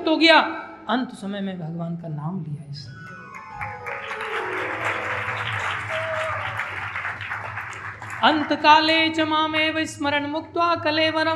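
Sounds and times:
speech: 0.1 - 3.0, 8.2 - 11.3
audience clapping loudly: 3.3 - 9.0.

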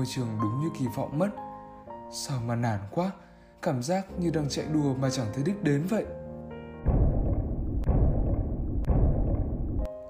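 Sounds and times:
speech: 0.0 - 1.5, 2.1 - 6.2
school drum beating: 6.8 - 9.9.

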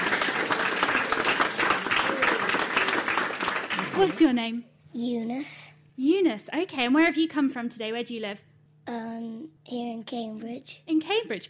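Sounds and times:
audience applause: 0.0 - 4.3
speech: 4.0 - 11.4.

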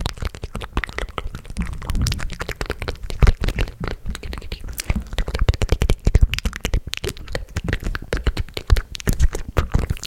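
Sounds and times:
wet mouth clicks smacks and pops: 0.0 - 10.0.

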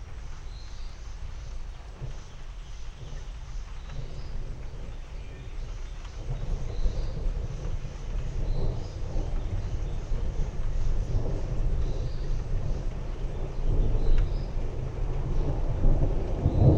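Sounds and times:
slow rolling thunderstorm in East Texas: 0.0 - 16.7.

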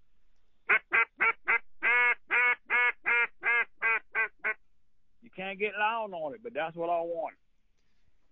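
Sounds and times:
small-reed duck call blown: 0.7 - 4.6
speech: 5.5 - 7.5.

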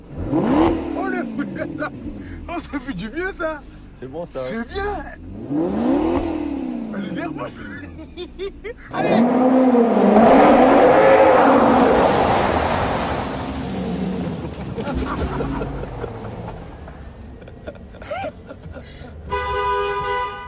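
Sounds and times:
neighbour's car pulling into a parking spot: 0.0 - 20.4
laughter: 1.1 - 2.9, 7.0 - 9.2, 14.7 - 19.2
speech: 1.8 - 6.4, 7.0 - 11.2
car horn honking: 19.2 - 20.4.

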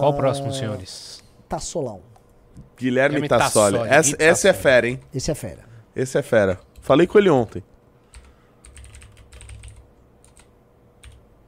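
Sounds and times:
speech: 0.0 - 7.7
typing on a computer keyboard: 8.1 - 11.2.

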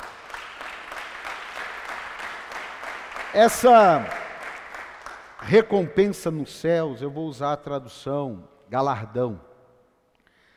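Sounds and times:
crowd applause: 0.0 - 5.9
speech: 3.3 - 4.2, 5.4 - 9.5.

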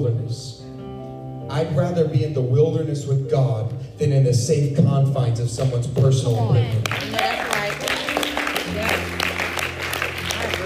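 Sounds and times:
speech: 1.5 - 7.9
worshipers clapping: 5.6 - 10.6.

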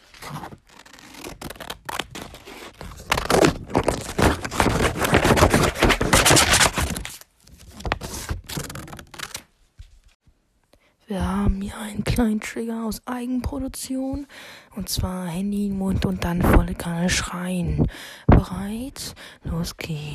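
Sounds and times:
paper being cut with scissors: 0.1 - 7.2
speech: 11.5 - 20.1.

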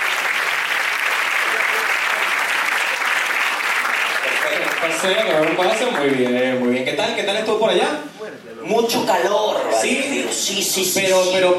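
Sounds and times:
audience applause: 0.0 - 6.7
speech: 4.8 - 11.5.

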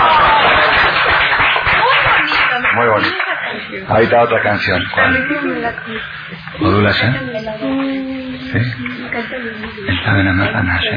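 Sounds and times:
audience applause: 0.0 - 3.5
speech: 3.0 - 10.9.

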